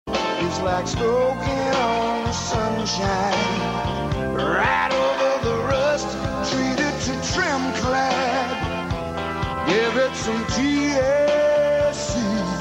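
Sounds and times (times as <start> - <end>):
paint commercial song: 0.1 - 12.5.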